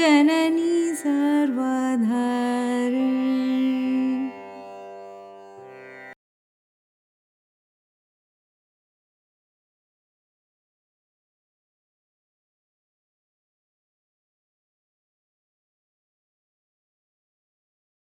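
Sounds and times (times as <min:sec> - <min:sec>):
carnatic music song in rupakam: 0:00.0 - 0:06.2.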